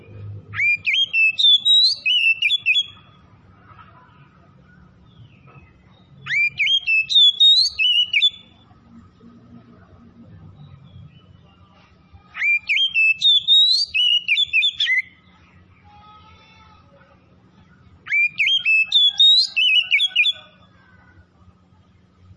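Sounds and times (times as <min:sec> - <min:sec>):
faint background hum: 0:00.0 - 0:22.3
Oriental magpie-robin song: 0:00.5 - 0:03.1, 0:06.2 - 0:08.6, 0:12.4 - 0:15.2, 0:18.0 - 0:20.6.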